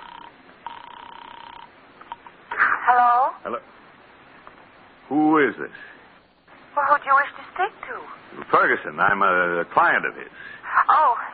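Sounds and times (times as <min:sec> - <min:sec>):
telephone ringing on a call to an apartment: 0:00.0 - 0:02.4
speech: 0:02.9 - 0:03.8, 0:05.1 - 0:06.0, 0:06.8 - 0:11.3.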